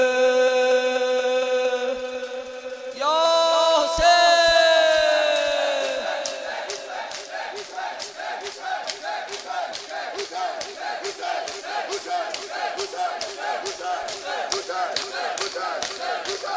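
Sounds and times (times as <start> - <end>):
mourners chanting and shouting collectively: 0.0 - 16.5
mourners beating their chests in Shia mourning ritual: 4.9 - 16.5.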